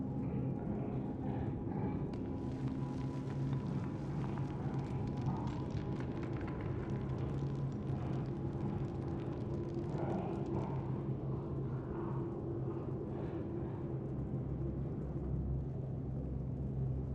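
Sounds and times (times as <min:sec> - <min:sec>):
indoor ambience: 0:00.1 - 0:17.0.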